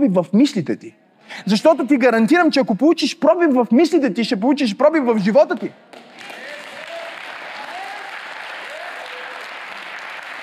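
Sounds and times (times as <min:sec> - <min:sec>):
speech: 0:00.0 - 0:06.0
audience applause: 0:06.1 - 0:10.4.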